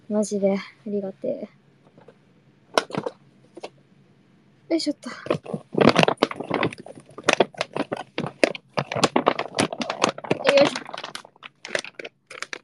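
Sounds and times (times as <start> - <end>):
speech: 0.1 - 1.6, 4.7 - 5.9
paper bags rustling and crumpling: 5.1 - 12.6.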